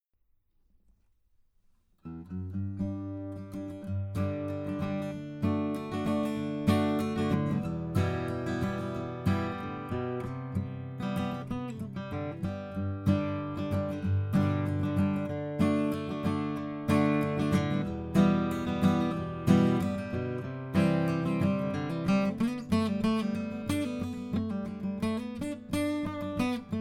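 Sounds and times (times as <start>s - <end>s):
acoustic music: 2.0s - 26.7s.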